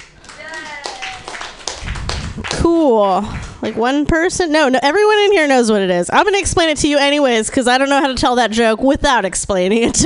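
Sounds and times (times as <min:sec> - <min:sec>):
audience clapping: 0:00.0 - 0:03.8
speech: 0:02.4 - 0:10.0.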